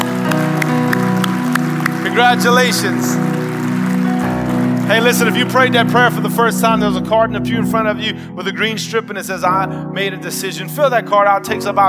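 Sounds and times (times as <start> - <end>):
crowd noise: 0.0 - 6.9
audience clapping in unison: 0.0 - 7.0
speech: 2.2 - 3.4, 4.9 - 11.8.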